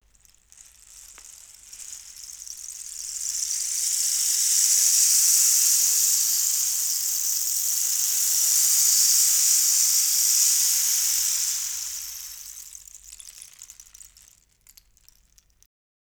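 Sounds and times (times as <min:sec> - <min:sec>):
rain stick: 0:00.0 - 0:15.6.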